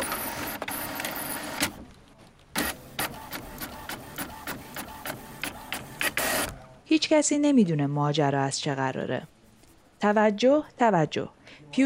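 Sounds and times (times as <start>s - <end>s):
office printer whirring: 0.0s - 6.8s
speech: 6.9s - 9.4s, 10.0s - 11.8s.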